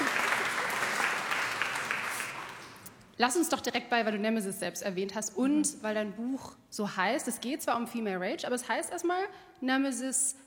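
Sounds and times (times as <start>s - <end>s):
audience clapping: 0.0s - 2.9s
speech: 3.2s - 10.4s.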